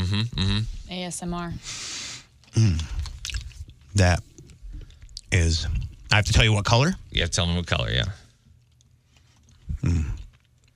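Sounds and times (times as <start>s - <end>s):
speech: 0.1s - 1.8s, 2.5s - 3.0s, 3.9s - 4.3s, 5.3s - 8.2s, 9.8s - 10.2s
chewing Skittles candy during a taste test: 2.4s - 6.1s, 8.6s - 10.7s.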